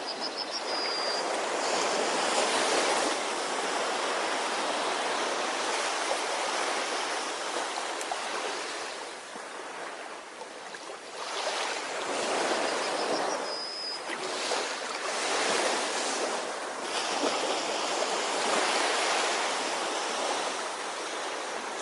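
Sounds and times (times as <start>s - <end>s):
ocean waves washing: 0.0s - 21.8s.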